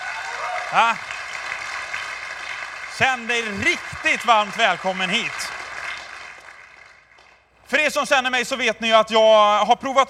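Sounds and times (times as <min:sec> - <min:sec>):
crowd clapping: 0:00.0 - 0:07.5
speech: 0:00.7 - 0:01.1, 0:03.0 - 0:05.4, 0:07.8 - 0:10.0.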